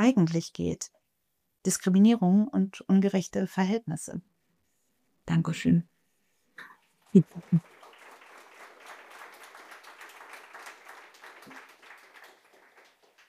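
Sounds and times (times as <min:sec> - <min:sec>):
speech: 0:00.0 - 0:01.0, 0:01.6 - 0:04.3, 0:05.3 - 0:05.9, 0:06.6 - 0:07.7
audience applause: 0:07.2 - 0:13.2.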